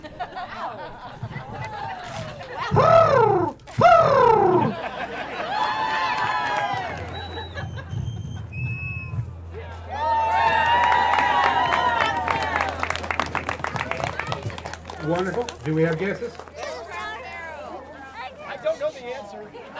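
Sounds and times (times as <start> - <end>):
crowd murmuring: 0.0 - 8.5, 11.1 - 19.7
laughter: 0.0 - 8.5
voice imitating a golden-crowned sparrow call: 7.0 - 9.2
speech: 15.7 - 16.5.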